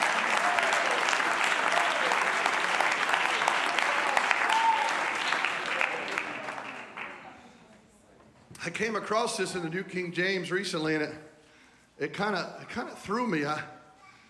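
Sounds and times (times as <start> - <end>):
audience clapping hands: 0.0 - 7.5
speech: 8.6 - 11.3, 12.0 - 13.8.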